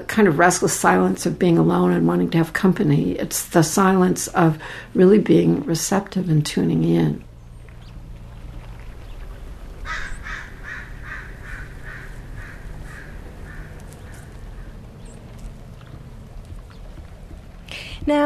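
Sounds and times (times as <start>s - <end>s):
speech: 0.0s - 7.3s
birds calling near their nest: 7.2s - 17.7s.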